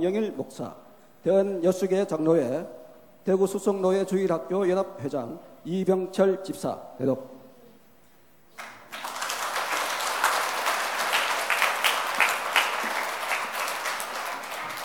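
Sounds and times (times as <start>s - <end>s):
speech: 0.0s - 7.3s
audience applause: 8.6s - 14.8s.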